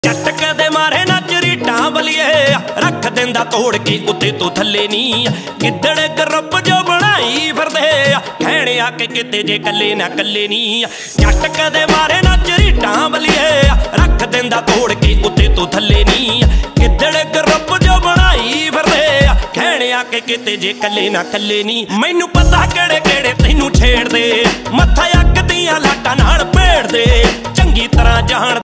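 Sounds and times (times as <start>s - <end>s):
Punjabi ringtone: 0.0s - 21.8s, 22.4s - 28.6s.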